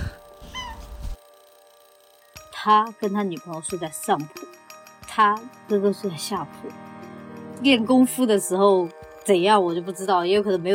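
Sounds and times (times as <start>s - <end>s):
cat meowing: 0.4s - 1.0s
speech: 2.6s - 4.6s, 5.2s - 6.9s, 7.6s - 10.7s.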